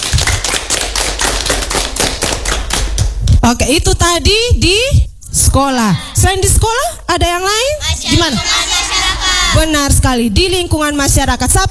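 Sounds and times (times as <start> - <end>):
classroom applause: 0.0 - 3.0
speech: 3.5 - 8.6, 9.6 - 11.6.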